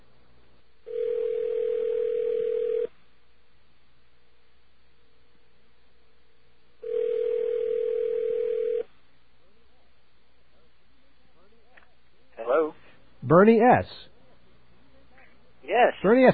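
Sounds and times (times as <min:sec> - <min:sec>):
telephone ringback tone over the line: 0:00.9 - 0:02.9, 0:06.8 - 0:08.9
speech: 0:13.3 - 0:14.1, 0:15.7 - 0:16.3.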